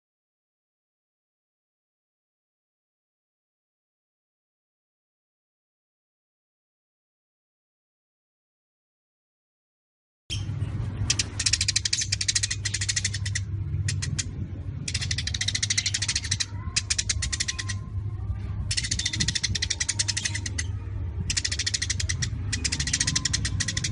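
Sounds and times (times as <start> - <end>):
Eurasian tree sparrows chattering: 10.3 - 23.8.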